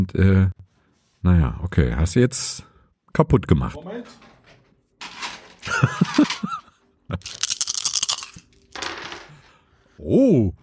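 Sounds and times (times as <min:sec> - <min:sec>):
speech: 0:00.0 - 0:00.6, 0:01.2 - 0:04.3, 0:05.7 - 0:07.4, 0:10.0 - 0:10.6
dice being rolled on a table: 0:05.0 - 0:06.6, 0:07.2 - 0:09.6
laughter: 0:05.6 - 0:07.4.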